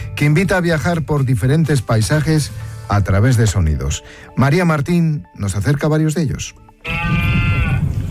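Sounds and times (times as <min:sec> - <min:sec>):
speech: 0:00.2 - 0:07.2
red deer stag bellowing: 0:06.8 - 0:08.0.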